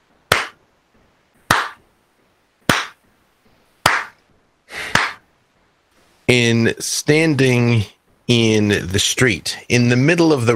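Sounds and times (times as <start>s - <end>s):
muffled clap of gloved hands: 0.3s - 0.6s, 1.4s - 1.8s, 2.6s - 3.0s, 3.8s - 4.2s, 4.8s - 5.3s
speech: 6.3s - 10.5s.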